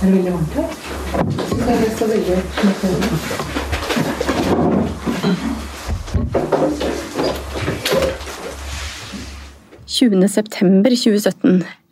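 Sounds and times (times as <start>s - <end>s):
speech: 0.0s - 3.6s, 4.5s - 5.6s, 10.0s - 11.9s
town hall window being opened with knocks and creaks: 1.0s - 8.7s.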